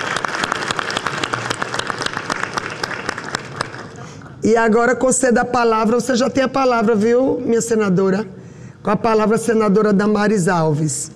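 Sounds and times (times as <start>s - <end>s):
audience applause: 0.0s - 4.2s
speech: 4.4s - 11.1s.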